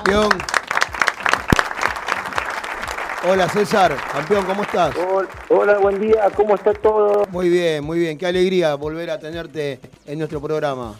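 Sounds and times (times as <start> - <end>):
speech: 0.0 - 0.6, 3.2 - 10.9
applause for a world boxing champion: 0.0 - 7.4.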